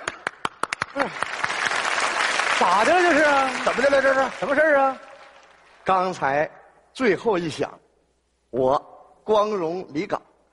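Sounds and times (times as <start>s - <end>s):
audience applause: 0.0s - 5.8s
speech: 1.0s - 1.3s, 2.6s - 5.1s, 5.9s - 7.8s, 8.5s - 10.2s.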